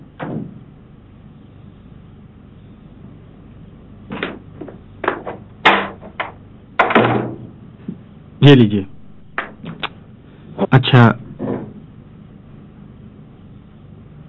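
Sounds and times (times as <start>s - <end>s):
broken door being closed by hand: 0.2s - 0.6s, 4.1s - 7.6s, 11.2s - 11.9s
speech: 8.4s - 9.0s, 10.9s - 11.2s.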